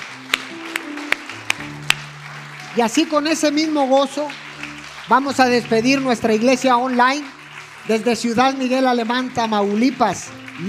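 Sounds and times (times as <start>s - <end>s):
audience clapping hands in unison: 0.0s - 10.6s
speech: 2.8s - 4.4s, 5.1s - 10.6s.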